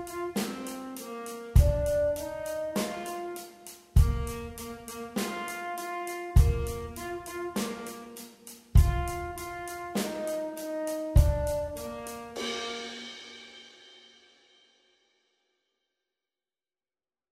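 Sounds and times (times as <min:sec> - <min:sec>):
rock tenor saxophone: 0:00.0 - 0:13.1.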